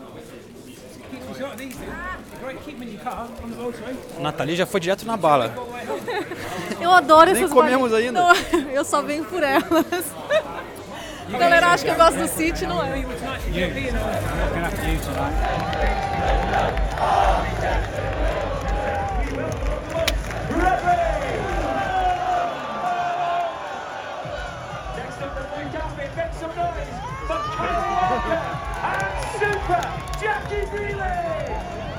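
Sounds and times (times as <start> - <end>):
speech: 1.4 - 10.2, 11.3 - 17.8
laughter: 5.6 - 22.1, 27.2 - 31.9
fans cheering at team bus arrival: 11.2 - 31.9.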